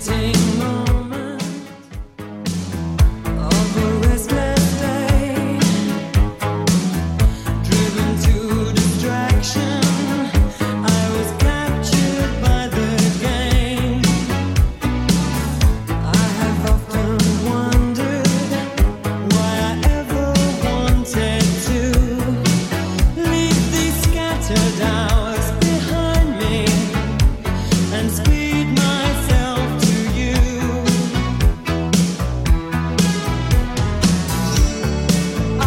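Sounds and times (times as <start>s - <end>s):
80s Redrum drum machine beat at 114 bpm: 0.0s - 35.6s.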